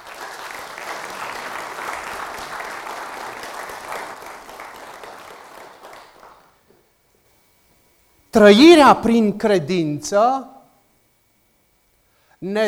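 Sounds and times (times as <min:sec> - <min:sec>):
audience applause: 0:00.0 - 0:06.8
speech: 0:08.4 - 0:10.5, 0:12.4 - 0:12.6.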